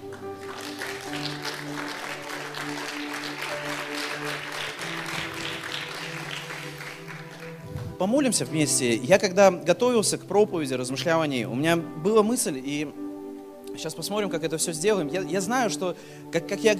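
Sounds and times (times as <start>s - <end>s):
audience clapping: 0.0s - 8.0s
speech: 8.0s - 13.0s, 13.8s - 16.7s.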